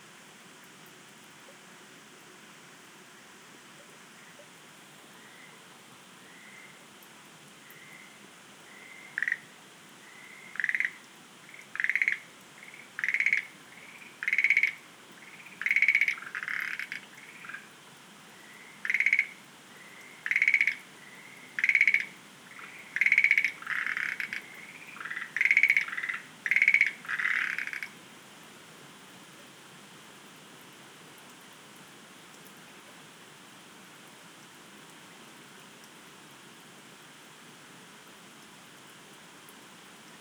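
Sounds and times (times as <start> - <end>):
hiss: 0.0 - 40.1
Schlegel's green tree frog calling: 8.7 - 17.8, 18.4 - 28.0.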